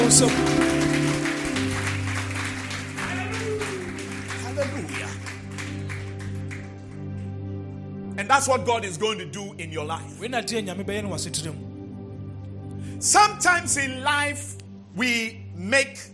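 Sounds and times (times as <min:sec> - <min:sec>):
audience clapping hands: 0:00.0 - 0:07.3
speech: 0:00.1 - 0:01.0, 0:08.4 - 0:11.7, 0:13.0 - 0:16.1.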